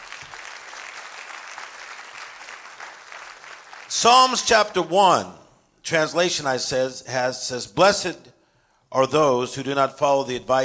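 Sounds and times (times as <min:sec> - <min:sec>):
audience applause: 0:00.0 - 0:04.4
speech: 0:03.9 - 0:08.3, 0:08.9 - 0:10.6.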